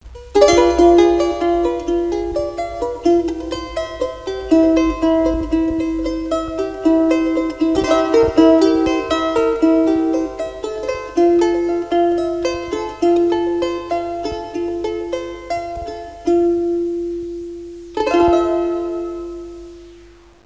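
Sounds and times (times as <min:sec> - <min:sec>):
instrumental music: 0:00.0 - 0:20.4.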